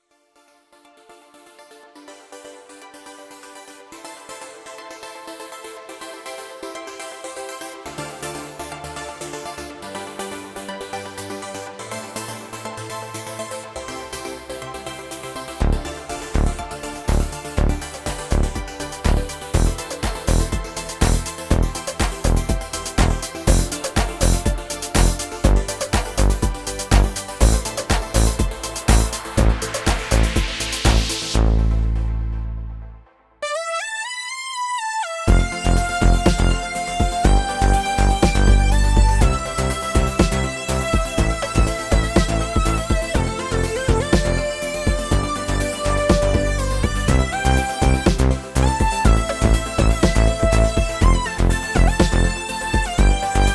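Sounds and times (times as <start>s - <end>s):
dance music: 2.2s - 53.5s.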